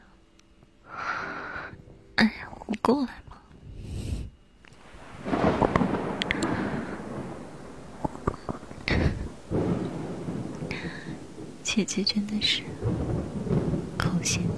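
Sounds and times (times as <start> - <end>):
speech: 2.2 - 3.3, 11.8 - 13.4, 14.2 - 14.5
rain hiss: 3.8 - 14.5
thunder rumbling: 4.8 - 14.5.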